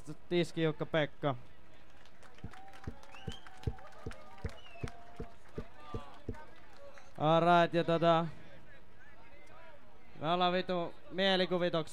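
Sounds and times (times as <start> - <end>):
speech: 0.1 - 1.6, 7.2 - 8.4, 10.2 - 11.9
audience applause: 1.9 - 7.1.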